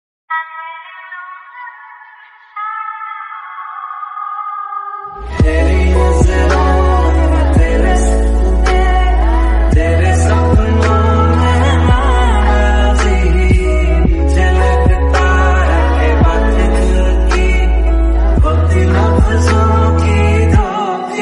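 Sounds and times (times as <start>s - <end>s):
sad remix ringtone: 5.1s - 21.2s.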